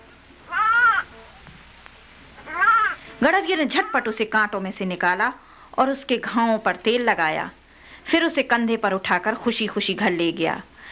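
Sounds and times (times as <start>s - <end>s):
sheep bleating: 2.5s - 3.0s
speech: 3.2s - 10.7s.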